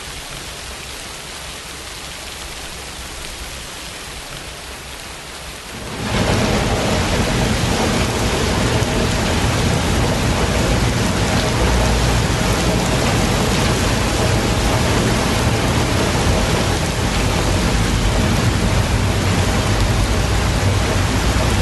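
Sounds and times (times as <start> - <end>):
rain: 0.0 - 21.6.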